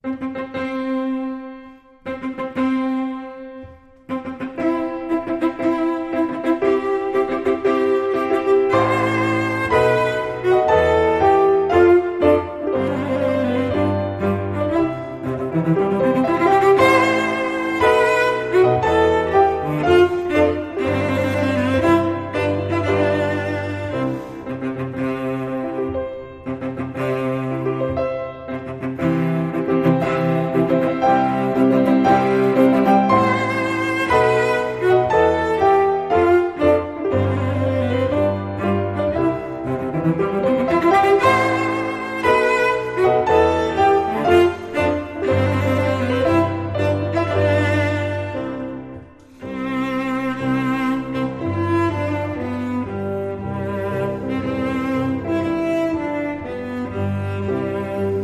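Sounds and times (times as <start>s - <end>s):
cello: 0.0s - 58.2s
piano: 0.0s - 58.2s.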